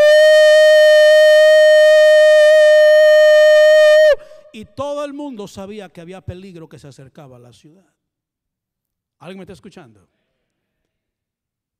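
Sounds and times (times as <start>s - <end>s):
trumpet warning blast: 0.0s - 4.4s
speech: 5.0s - 8.0s, 9.2s - 10.2s.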